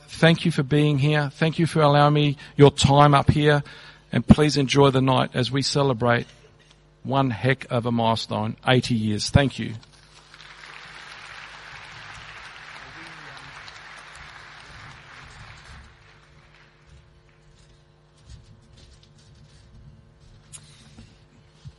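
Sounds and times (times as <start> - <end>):
speech: 0.2 - 6.4, 7.0 - 9.9
crowd applause: 10.1 - 17.0.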